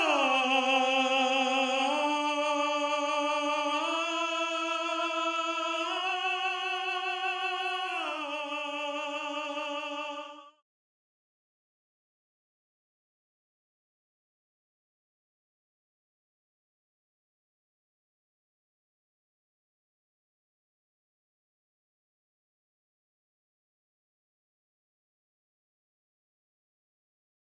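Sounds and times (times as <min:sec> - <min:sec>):
tenor singing: 0:00.0 - 0:10.5.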